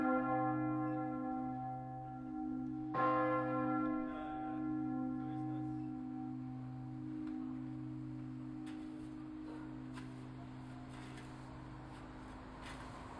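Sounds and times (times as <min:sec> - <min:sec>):
bell: 0:00.0 - 0:13.1.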